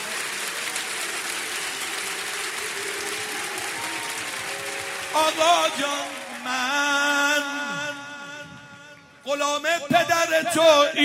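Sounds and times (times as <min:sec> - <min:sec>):
audience at a religious gathering clapping in a Heydari clap: 0:00.0 - 0:08.4
speech: 0:05.2 - 0:08.0, 0:09.3 - 0:11.0.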